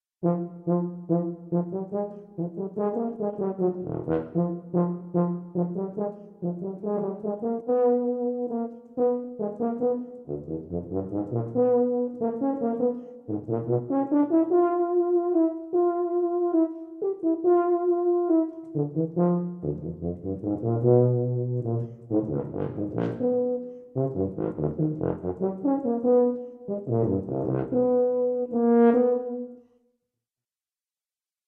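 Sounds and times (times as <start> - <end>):
solo tuba capriccio: 0.2 - 29.7.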